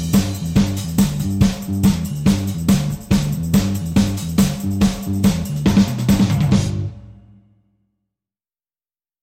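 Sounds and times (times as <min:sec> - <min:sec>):
bass guitar: 0:00.0 - 0:07.2
drums: 0:00.0 - 0:07.6.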